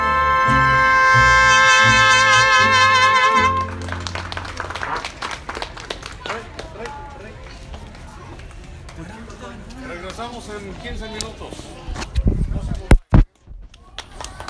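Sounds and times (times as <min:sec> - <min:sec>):
mariachi music: 0:00.0 - 0:05.0.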